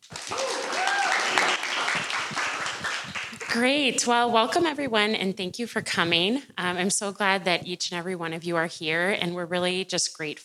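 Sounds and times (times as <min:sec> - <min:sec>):
audience applause for a speaker who has just been introduced: 0:00.0 - 0:03.8
brief cheer: 0:00.1 - 0:03.3
speech: 0:03.6 - 0:10.4.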